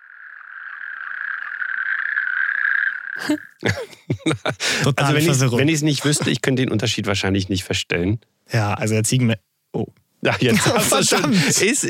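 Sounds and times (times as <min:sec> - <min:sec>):
natterjack toad calling: 0:00.0 - 0:03.6
laughter: 0:03.2 - 0:06.4, 0:10.2 - 0:11.8
speech: 0:03.2 - 0:11.8.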